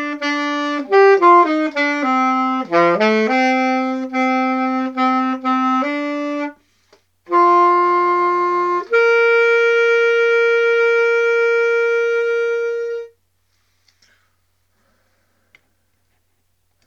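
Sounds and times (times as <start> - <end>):
saxophone: 0.0 - 13.2.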